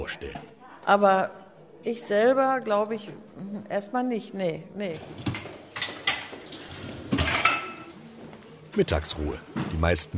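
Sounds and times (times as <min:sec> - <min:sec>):
speech: 0:00.0 - 0:05.4, 0:08.8 - 0:10.1
caregiver putting glasses into a dishwasher: 0:07.1 - 0:08.0.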